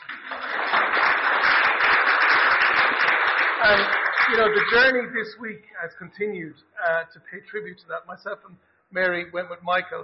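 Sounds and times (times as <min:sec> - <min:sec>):
audience applause: 0:00.0 - 0:05.0
speech: 0:03.6 - 0:10.0.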